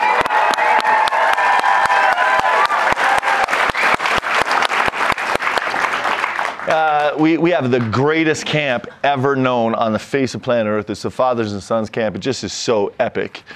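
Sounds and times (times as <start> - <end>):
audience applause and cheering: 0.0 - 8.0
speech: 7.2 - 13.5.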